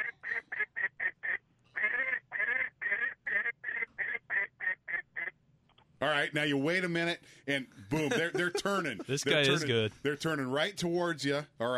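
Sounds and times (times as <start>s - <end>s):
duck quacking: 0.0s - 5.4s
speech: 6.0s - 11.7s
laughter: 7.9s - 9.8s.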